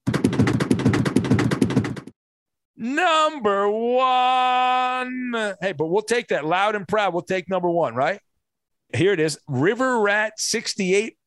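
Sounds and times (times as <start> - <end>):
drum roll: 0.0 - 2.2
speech: 2.8 - 8.3, 8.9 - 11.2.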